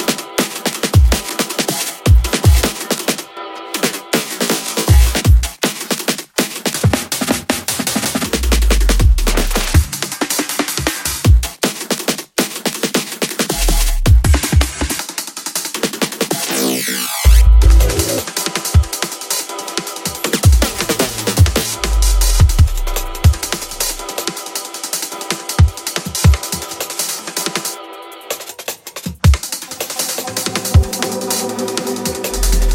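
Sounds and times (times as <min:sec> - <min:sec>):
drumming: 0:00.0 - 0:03.2, 0:03.8 - 0:16.7, 0:17.3 - 0:32.7.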